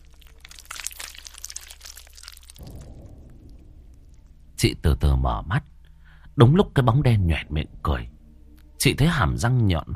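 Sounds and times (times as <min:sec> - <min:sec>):
neck bones cracking, horror story sound effect: 0:00.0 - 0:04.6
low rumble: 0:02.5 - 0:06.4
speech: 0:04.6 - 0:05.7, 0:06.4 - 0:08.1, 0:08.8 - 0:09.9.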